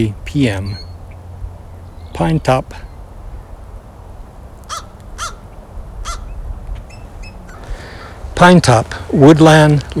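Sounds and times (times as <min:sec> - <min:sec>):
speech: 0:00.0 - 0:00.9, 0:02.2 - 0:02.9, 0:08.4 - 0:09.9
higher bird calls: 0:00.0 - 0:03.6, 0:04.6 - 0:09.2
American crow cawing in Woodland Lake Park, Pine Top, Arizona: 0:04.6 - 0:06.4, 0:07.5 - 0:08.2.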